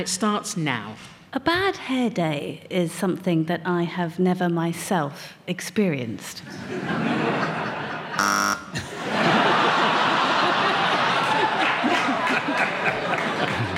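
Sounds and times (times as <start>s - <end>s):
speech: 0.0s - 8.8s
audience laughter and chatter: 6.5s - 13.7s
game show buzzer: 8.2s - 8.8s.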